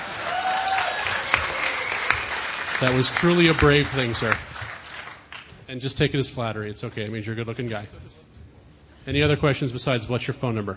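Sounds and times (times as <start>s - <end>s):
audience applause at a hacker convention: 0.0s - 5.5s
speech: 2.8s - 4.5s, 5.7s - 8.2s, 9.0s - 10.7s.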